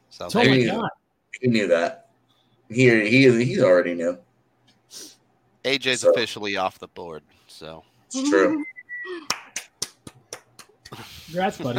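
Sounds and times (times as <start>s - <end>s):
speech: 0.1s - 2.0s, 2.7s - 4.3s, 4.9s - 8.8s, 10.9s - 11.7s
lone person clapping: 9.2s - 11.1s.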